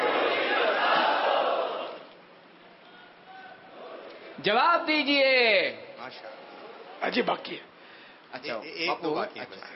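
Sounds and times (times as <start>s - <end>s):
crowd chanting a slogan in praise of their spiritual guide at a religious gathering: 0.0s - 2.1s
speech: 4.4s - 7.7s, 8.3s - 9.7s.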